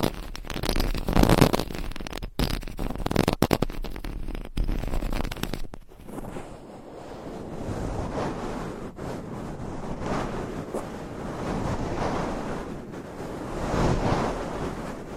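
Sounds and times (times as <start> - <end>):
microphone scratching: 0.0 - 15.1.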